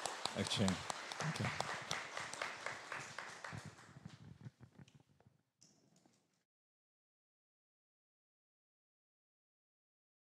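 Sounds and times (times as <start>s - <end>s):
audience applause: 0.0s - 4.2s
speech: 0.4s - 1.8s.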